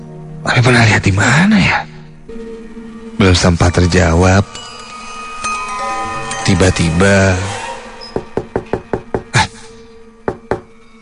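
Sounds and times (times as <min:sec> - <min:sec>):
speech: 0:00.4 - 0:02.5, 0:03.2 - 0:04.6, 0:06.5 - 0:07.5
knocking on a bedroom door: 0:08.2 - 0:09.4, 0:10.2 - 0:10.7.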